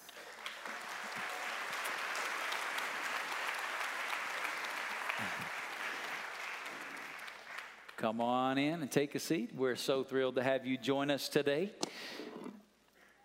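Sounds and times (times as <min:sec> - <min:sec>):
audience applause welcoming a panel of moms at a church service: 0:00.0 - 0:08.0
speech: 0:05.2 - 0:05.6, 0:08.0 - 0:12.2.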